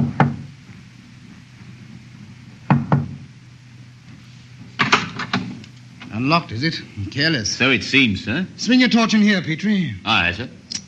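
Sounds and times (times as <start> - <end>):
discreet knocking on a cabin door: 0.0 - 0.5, 2.7 - 3.2
low steady hum: 0.0 - 10.8
speech: 6.2 - 10.6.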